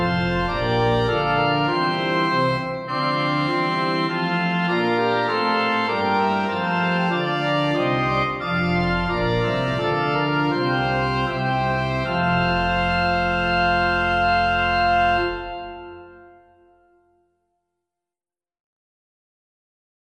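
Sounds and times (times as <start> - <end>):
organ playing a hymn: 0.0 - 17.1.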